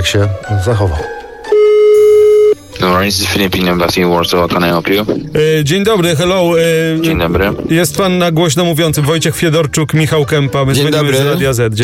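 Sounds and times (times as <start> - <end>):
speech: 0.0 - 1.2, 2.8 - 11.8
telephone ringing tone while calling: 1.5 - 2.6.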